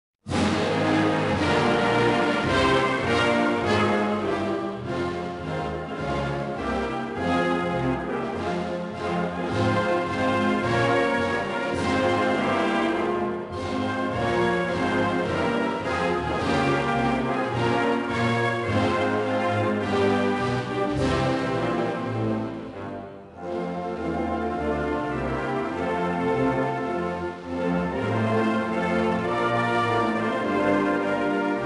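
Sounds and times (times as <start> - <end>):
national anthem: 0.3 - 31.6.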